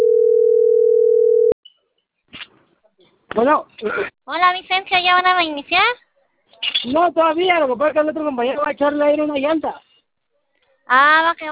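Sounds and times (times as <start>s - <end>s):
telephone ringback tone while a call is placed: 0.0s - 1.6s
speech: 3.4s - 6.0s, 6.8s - 9.8s, 10.9s - 11.5s.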